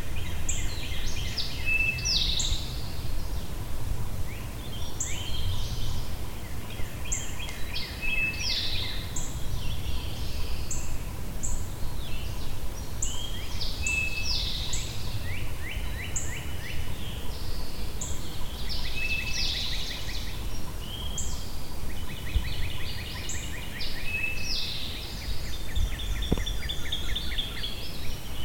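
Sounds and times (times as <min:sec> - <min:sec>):
bird chorus: 0:00.0 - 0:28.4.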